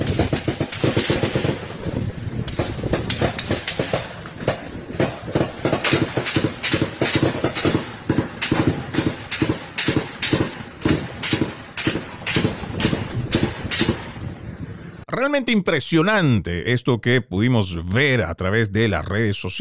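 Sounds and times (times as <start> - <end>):
gunshots during an armed clash: 0.0 - 14.3
noise: 0.0 - 19.6
speech: 15.2 - 19.6.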